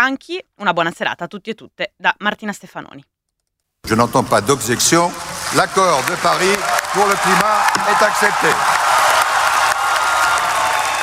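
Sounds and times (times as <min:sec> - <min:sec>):
speech: 0:00.0 - 0:03.1, 0:03.8 - 0:08.8
applause at the adoption of the Paris climate agreement: 0:04.1 - 0:11.0.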